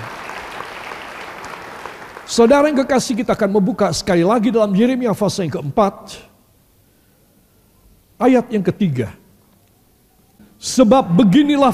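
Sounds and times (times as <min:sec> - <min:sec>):
audience applause: 0:00.0 - 0:02.6
speech: 0:02.3 - 0:06.3, 0:08.2 - 0:09.2, 0:10.6 - 0:11.7.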